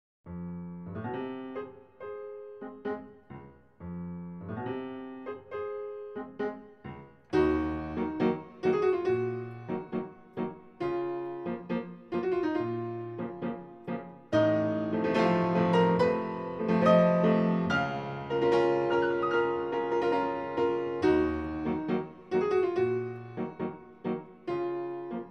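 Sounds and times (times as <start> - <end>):
tango on piano: 0.3 - 25.3.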